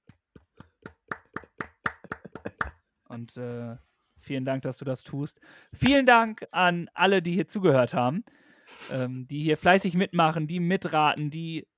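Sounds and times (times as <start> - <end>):
single pair of hands clapping: 0.0 - 2.8
speech: 3.2 - 11.7.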